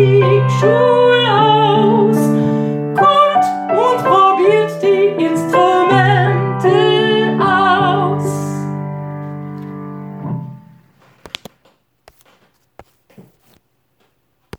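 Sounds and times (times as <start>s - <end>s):
person singing: 0.0s - 8.8s
piano accompaniment: 0.0s - 11.0s.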